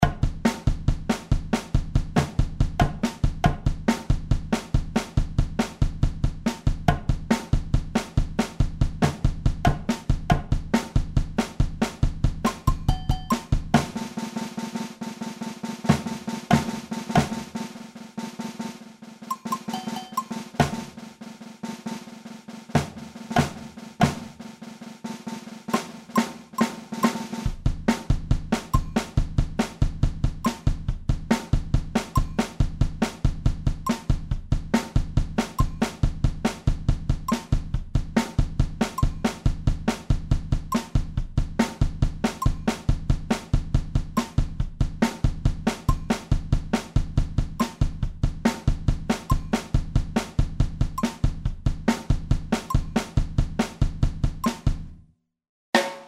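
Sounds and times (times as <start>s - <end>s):
blues batucada drum kit: 0.0s - 54.9s, 55.7s - 56.0s.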